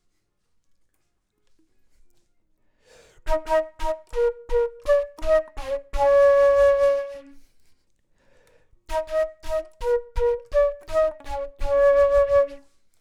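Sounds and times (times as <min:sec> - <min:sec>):
flute: 0:03.2 - 0:07.6, 0:08.8 - 0:12.9.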